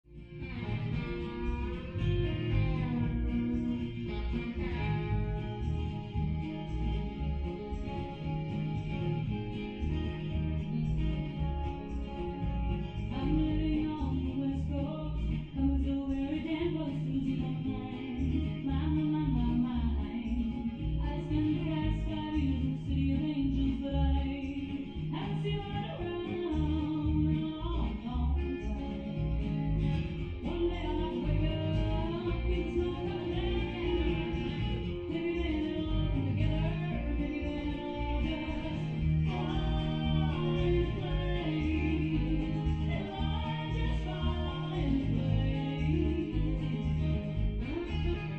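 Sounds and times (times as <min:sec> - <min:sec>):
woman singing fast country music: 0:00.2 - 0:48.3.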